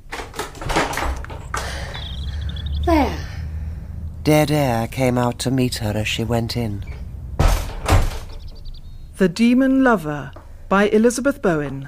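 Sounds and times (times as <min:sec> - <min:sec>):
warped door pushed open with a knee: 0:00.0 - 0:03.0, 0:04.9 - 0:08.8
speech: 0:02.9 - 0:03.2, 0:04.2 - 0:06.9, 0:09.2 - 0:11.8.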